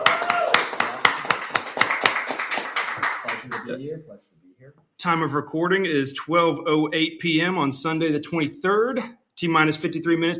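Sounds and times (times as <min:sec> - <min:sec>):
small group clapping: 0:00.0 - 0:03.8
speech: 0:03.7 - 0:10.3.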